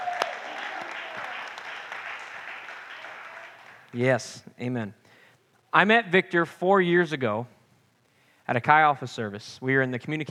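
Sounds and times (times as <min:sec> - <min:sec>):
audience applause: 0:00.0 - 0:03.9
speech: 0:03.9 - 0:05.0, 0:05.7 - 0:07.6, 0:08.5 - 0:10.2.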